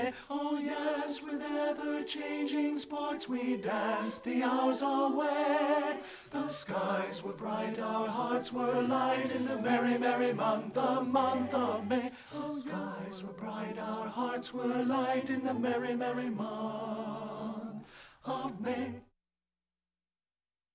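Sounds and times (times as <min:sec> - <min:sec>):
tenor singing a madrigal: 0:00.0 - 0:19.0.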